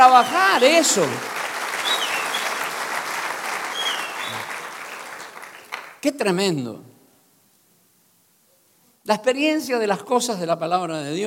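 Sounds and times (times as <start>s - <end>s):
crowd clapping: 0.0s - 6.0s
speech: 0.1s - 1.4s, 6.0s - 6.9s, 9.0s - 11.2s.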